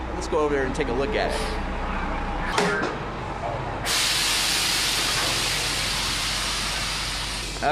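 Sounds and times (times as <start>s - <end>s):
bus pulling up: 0.0s - 7.7s
speech: 0.3s - 1.8s, 2.5s - 3.0s
bus air brakes hissing: 1.3s - 1.6s, 3.8s - 7.7s.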